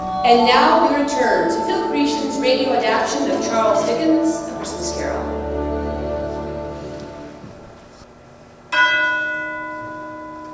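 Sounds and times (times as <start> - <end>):
speech: 0.3 - 5.4
clock bell striking one o'clock: 8.7 - 10.5.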